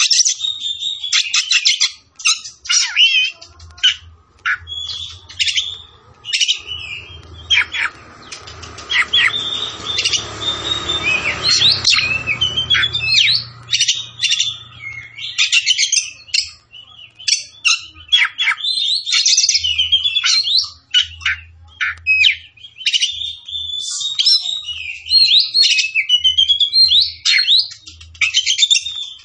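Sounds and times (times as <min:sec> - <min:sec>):
Oriental magpie-robin singing: 0:00.0 - 0:29.2.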